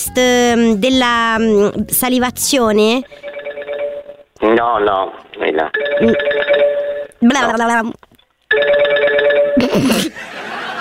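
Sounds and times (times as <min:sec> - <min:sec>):
speech: 0:00.1 - 0:03.3, 0:04.4 - 0:10.4
telephone ringing: 0:03.0 - 0:04.3, 0:05.7 - 0:07.5, 0:08.5 - 0:09.7
laughter: 0:09.6 - 0:10.7.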